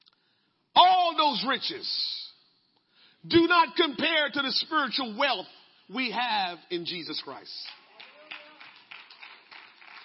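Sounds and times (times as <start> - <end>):
speech: 0.8 - 2.2, 3.2 - 7.8
scattered clapping: 7.6 - 10.0.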